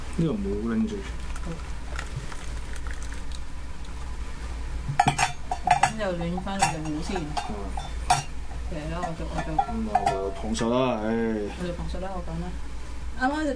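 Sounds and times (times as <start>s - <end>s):
speech: 0.2s - 1.7s, 6.0s - 8.0s, 8.7s - 13.5s
boiling water poured into cocktail glasses: 1.2s - 3.4s
glasses clinking and clattering: 4.9s - 11.6s.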